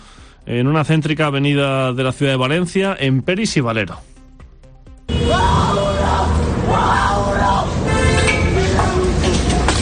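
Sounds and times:
speech: 0.4s - 4.1s
street brawl between squatters: 5.1s - 9.7s.

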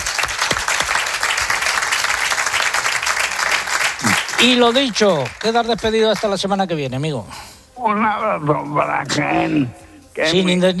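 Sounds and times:
audience applause: 0.0s - 6.3s
speech: 4.4s - 10.7s.

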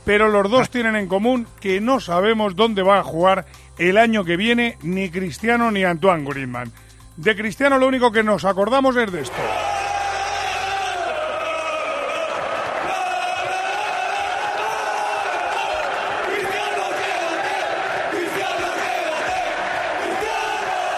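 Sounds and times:
speech: 0.1s - 9.7s
huge stadium crowd chanting a drawn-out cry in unison: 9.3s - 20.9s.

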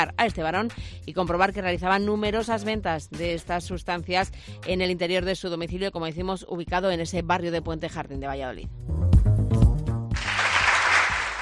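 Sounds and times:
speech: 0.0s - 9.1s
applause for the Medina de Rioseco Holy Week tourism spot: 10.1s - 11.4s.

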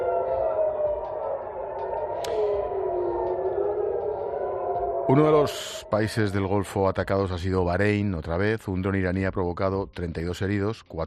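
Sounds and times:
air raid alarm siren: 0.0s - 7.9s
brief sharp click: 2.2s - 2.6s
speech: 5.1s - 11.0s.

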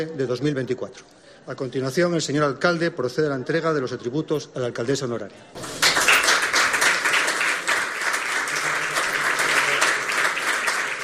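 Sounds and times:
speech: 0.0s - 6.0s
applause from council members: 5.6s - 11.0s.

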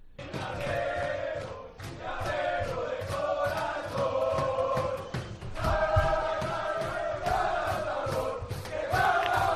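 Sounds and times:
players chanting and shouting in celebration: 0.0s - 9.5s
rhythmic clapping or stomping: 0.2s - 9.5s.

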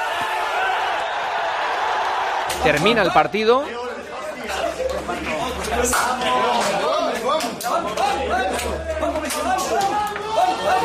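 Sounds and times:
several voices shouting and cheering in a locker room: 0.0s - 10.8s
speech: 2.6s - 10.8s.

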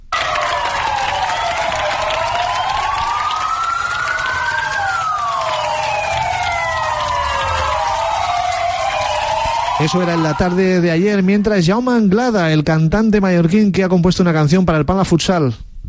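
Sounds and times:
evening applause: 0.0s - 11.1s
police sirens: 0.0s - 12.0s
speech: 9.8s - 15.7s.

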